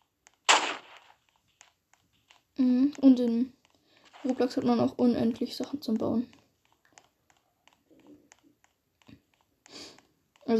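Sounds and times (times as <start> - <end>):
gunshot at windows in video game Roblox: 0.5 - 1.1
speech: 2.6 - 3.6, 4.2 - 6.4.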